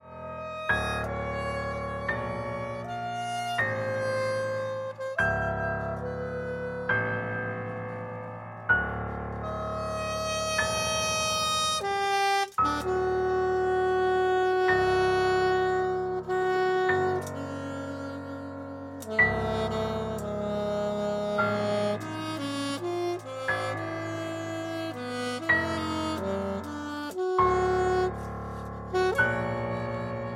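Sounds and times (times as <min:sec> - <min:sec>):
saxophone and piano: 0:00.0 - 0:30.3.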